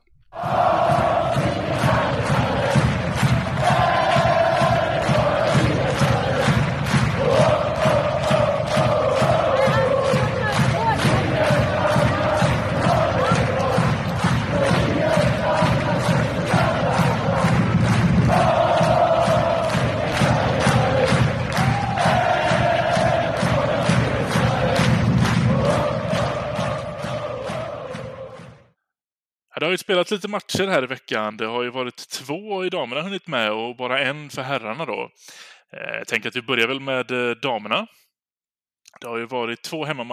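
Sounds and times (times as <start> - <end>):
crowd cheering and chanting: 0.3 - 28.7
clapping or stomping: 0.8 - 28.6
speech: 29.6 - 38.0, 38.9 - 40.1.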